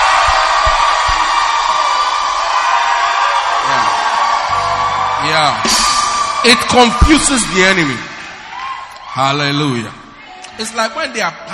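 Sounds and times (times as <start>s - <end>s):
audience shouting: 0.0s - 9.2s
speech: 5.4s - 5.8s, 6.4s - 8.1s, 9.2s - 10.0s, 10.6s - 11.5s.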